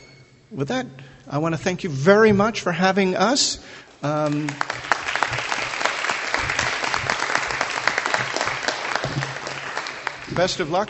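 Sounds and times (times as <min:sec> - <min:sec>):
speech: 0:00.5 - 0:04.9, 0:10.4 - 0:10.8
audience applause: 0:04.2 - 0:10.8.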